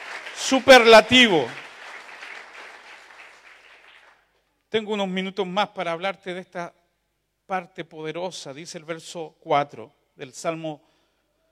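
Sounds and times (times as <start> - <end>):
audience applause: 0.0 - 4.2
speech: 0.4 - 1.6, 4.7 - 6.8, 7.5 - 10.9.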